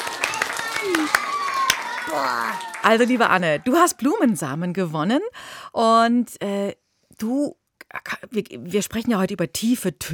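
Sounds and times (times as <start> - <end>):
a few people clapping after a correct quiz answer: 0.0 - 3.2
speech: 2.1 - 10.1.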